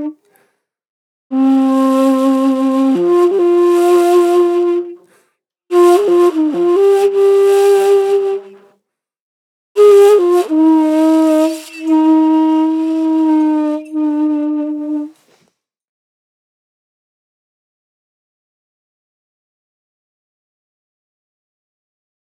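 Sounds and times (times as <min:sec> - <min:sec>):
dry ney flute: 0:01.3 - 0:05.0, 0:05.7 - 0:08.6, 0:09.8 - 0:15.4.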